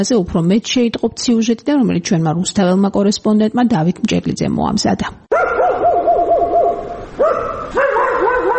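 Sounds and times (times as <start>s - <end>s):
speech: 0.0s - 5.6s
stray dogs barking on a city street at dusk: 5.3s - 8.5s.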